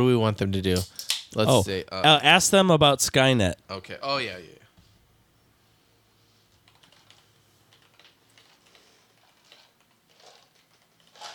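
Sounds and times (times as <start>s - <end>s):
speech: 0.0s - 4.6s
typing a question into a GPT chatbot on a computer keyboard: 6.6s - 11.3s.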